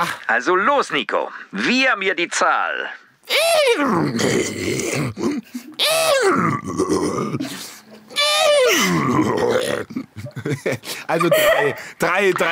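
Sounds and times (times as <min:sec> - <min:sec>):
speech: 0:00.0 - 0:12.5
person imitating a horse whinny: 0:03.2 - 0:09.9
grunting vocal sounds: 0:03.3 - 0:10.2
laughter: 0:09.4 - 0:12.5.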